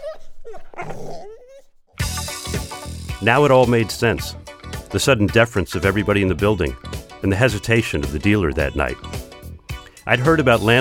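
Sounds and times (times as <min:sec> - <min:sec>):
dogs growling and fighting: 0:00.0 - 0:02.2
speech: 0:03.2 - 0:09.2, 0:10.1 - 0:10.7.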